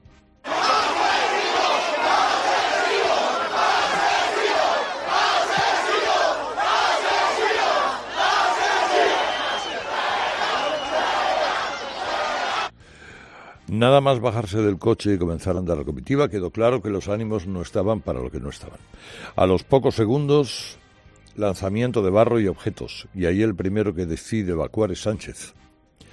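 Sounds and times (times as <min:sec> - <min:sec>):
angry protest crowd shouting: 0:00.5 - 0:12.7
speech: 0:13.8 - 0:20.8, 0:21.4 - 0:25.6.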